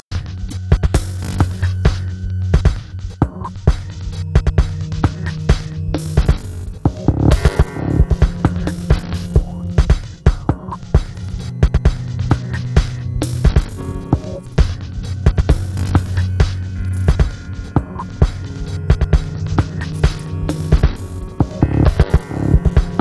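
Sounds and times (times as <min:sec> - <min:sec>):
guitar: 0:00.1 - 0:23.0.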